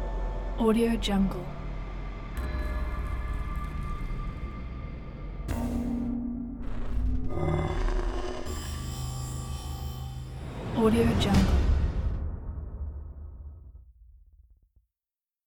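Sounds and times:
suspense atmospheres: 0:00.0 - 0:13.8.

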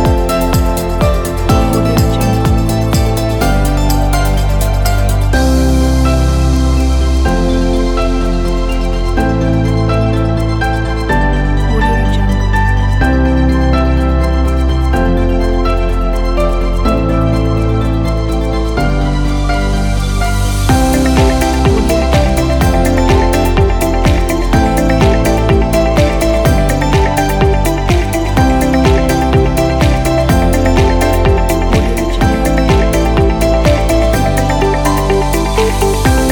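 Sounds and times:
inspirational corporate music: 0:00.0 - 0:36.3.

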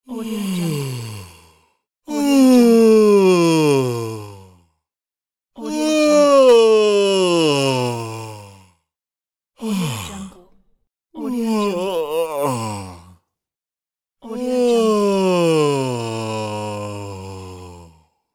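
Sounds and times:
man yawning on waking up: 0:02.1 - 0:04.5, 0:05.6 - 0:08.6, 0:09.6 - 0:10.4, 0:11.2 - 0:13.1, 0:14.3 - 0:18.0.

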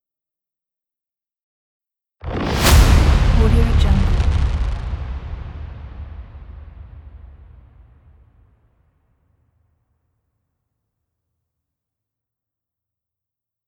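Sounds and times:
trailer impacts: 0:02.2 - 0:08.6.

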